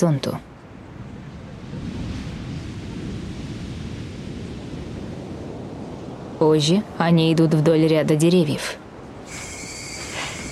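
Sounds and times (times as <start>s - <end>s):
speech: 0.0s - 0.5s, 6.4s - 8.8s
ocean waves: 0.0s - 10.4s.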